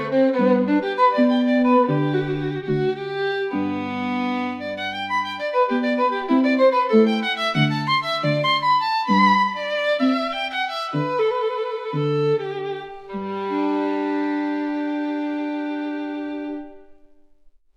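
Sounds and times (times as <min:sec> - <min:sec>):
violin playing: 0:00.0 - 0:17.3.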